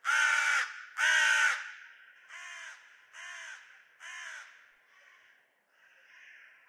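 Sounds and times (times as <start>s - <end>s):
crow: 0.0s - 6.6s.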